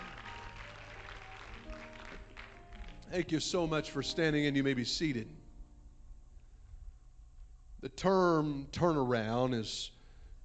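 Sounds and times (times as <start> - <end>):
audience clapping hands: 0.0 - 3.7
speech: 3.1 - 5.4, 7.9 - 10.0.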